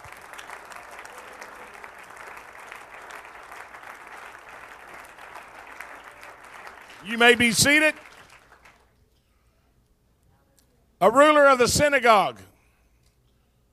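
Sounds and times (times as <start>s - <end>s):
audience applauding: 0.0s - 8.9s
speech: 7.0s - 8.0s, 11.0s - 12.5s.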